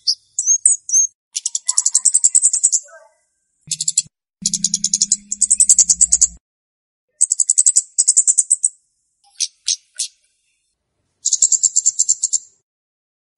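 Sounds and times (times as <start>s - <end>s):
flowerpecker ticking call series: 0.0s - 2.9s, 3.7s - 6.4s, 7.2s - 10.1s, 11.2s - 12.5s.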